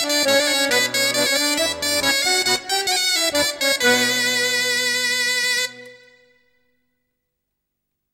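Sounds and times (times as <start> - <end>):
gavotte dance music: 0.0 - 6.3.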